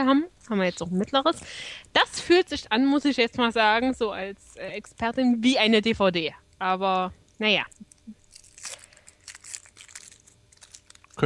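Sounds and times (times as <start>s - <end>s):
speech: 0.0s - 7.8s
wrapped package being ripped open: 7.9s - 11.2s.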